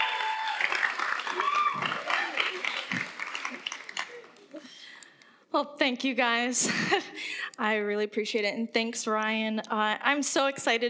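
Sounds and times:
cheers and whoops: 0.0 - 4.3
crowd applause: 0.0 - 4.7
speech: 1.3 - 1.8, 5.5 - 10.8.

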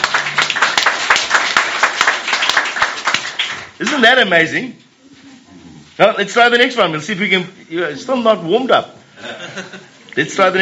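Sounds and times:
crowd clapping hands in a steady quick rhythm: 0.0 - 4.2
speech: 4.0 - 4.8, 6.0 - 10.6
laughter: 9.2 - 10.0.

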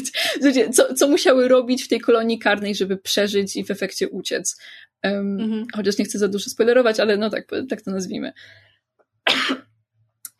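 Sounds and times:
speech: 0.0 - 8.7
sneeze or sharp cough: 9.3 - 9.7.

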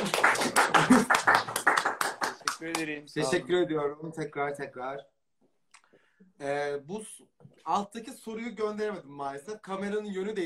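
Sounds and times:
laughter: 0.0 - 1.8
audience applause: 0.0 - 2.9
speech: 2.6 - 5.2, 6.2 - 10.4.

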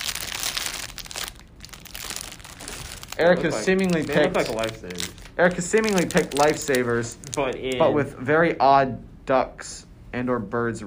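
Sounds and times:
rummaging in a crinkly plastic snack bag: 0.0 - 7.5
speech: 3.2 - 10.8.

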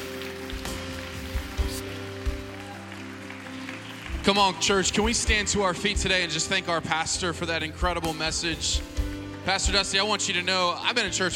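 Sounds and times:
audience clapping: 0.0 - 6.4, 7.7 - 10.2
speech: 4.2 - 11.3.

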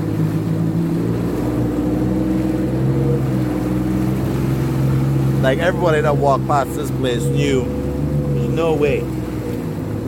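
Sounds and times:
wave runner engine on water: 0.0 - 10.0
speech: 5.4 - 7.8, 8.6 - 9.2.

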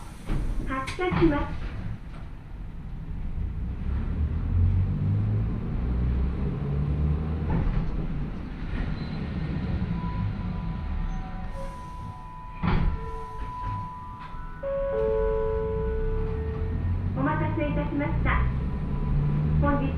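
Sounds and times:
train with nose-suspended traction motors running: 0.0 - 19.9
short knocks and clanks: 7.4 - 9.0, 12.6 - 14.4.

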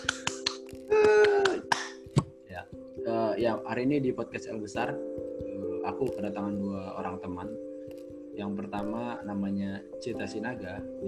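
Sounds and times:
hand clapping: 0.0 - 2.4
speech: 3.4 - 5.2, 5.8 - 7.7, 8.4 - 11.0.

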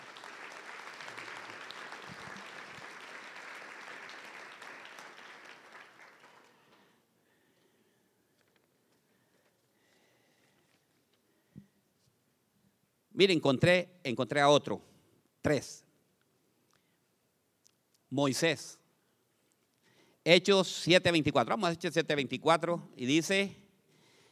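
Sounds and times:
audience applause: 0.0 - 6.8
speech: 13.2 - 15.8, 18.1 - 18.8, 20.2 - 23.6.

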